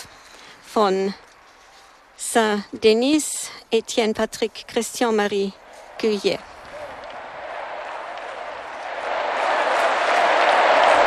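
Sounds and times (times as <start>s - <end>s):
speech: 0.8s - 1.2s, 2.3s - 6.5s
thunderous stadium applause: 6.5s - 11.0s.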